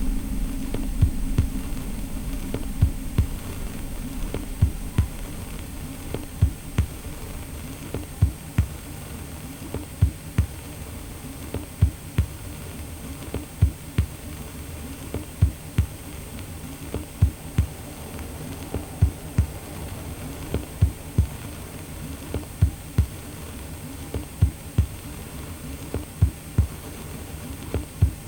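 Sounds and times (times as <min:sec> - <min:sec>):
heating system deep bass drone: 0:00.0 - 0:10.2, 0:15.9 - 0:23.2
faint high whine: 0:00.0 - 0:28.2
soft hiss: 0:00.0 - 0:28.2.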